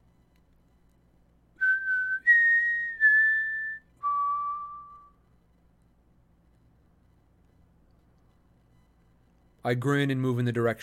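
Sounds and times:
whistled four-note tune: 1.6s - 5.1s
speech: 9.6s - 10.8s.

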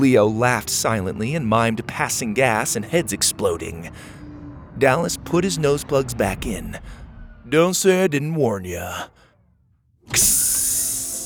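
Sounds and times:
speech: 0.0s - 4.2s, 4.8s - 9.2s, 10.1s - 10.4s
sci-fi door hissing open: 10.1s - 11.2s.

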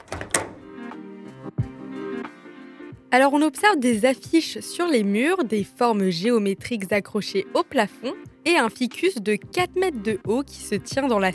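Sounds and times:
heavy thunk: 0.0s - 0.8s
door pushed open: 0.0s - 0.9s
speech: 3.1s - 11.3s.

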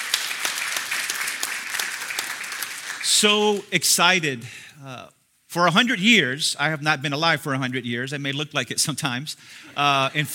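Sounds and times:
church congregation applauding: 0.0s - 4.1s
speech: 3.0s - 10.3s.

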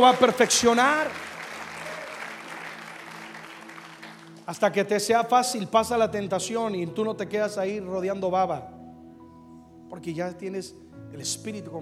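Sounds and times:
speech: 0.0s - 1.3s, 4.5s - 8.8s, 9.9s - 11.7s
audience applause: 0.0s - 4.6s.

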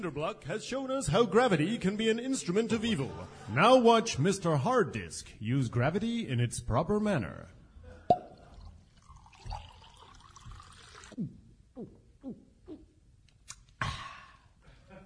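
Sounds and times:
speech: 0.0s - 7.6s
milk being poured: 8.3s - 11.2s.

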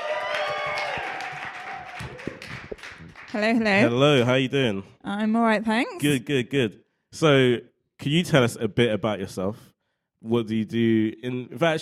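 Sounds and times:
audience applauding a guest onto the stage: 0.0s - 4.1s
speech: 3.3s - 11.8s.

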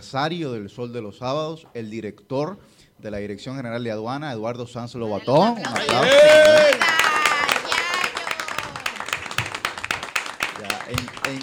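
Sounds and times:
speech: 0.0s - 7.0s, 10.9s - 11.4s
crowd applauding: 5.6s - 11.4s
voices cheering: 5.6s - 11.4s.

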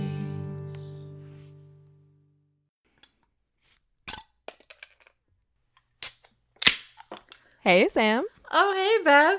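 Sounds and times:
beer bottle being opened: 3.0s - 5.2s, 6.0s - 7.4s
speech: 7.7s - 9.3s.

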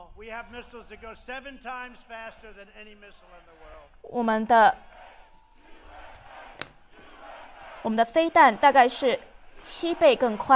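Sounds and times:
speech: 0.2s - 5.0s, 7.8s - 10.5s
crowd chanting at rally: 4.6s - 10.5s.

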